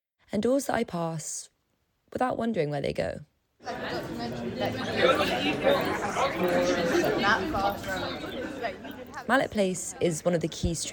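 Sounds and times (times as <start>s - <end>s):
speech: 0.3s - 1.5s, 2.1s - 10.9s
busy campus street chatter: 3.6s - 10.9s.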